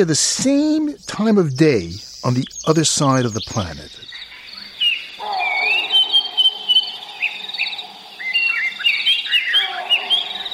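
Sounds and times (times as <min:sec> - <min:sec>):
speech: 0:00.0 - 0:04.1
African dawn chorus of birds chirping and whistling: 0:00.0 - 0:10.5
insects buzzing: 0:00.0 - 0:10.5.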